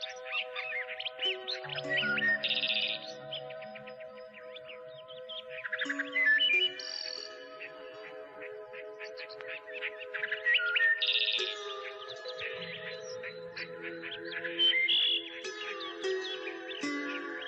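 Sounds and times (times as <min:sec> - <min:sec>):
birds singing: 0:00.0 - 0:17.4.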